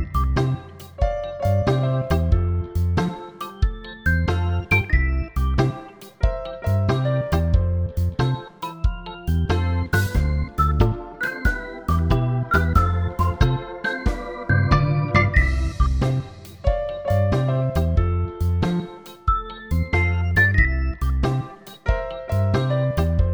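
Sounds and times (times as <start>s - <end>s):
drum kit in a full mix: 0.0s - 23.3s.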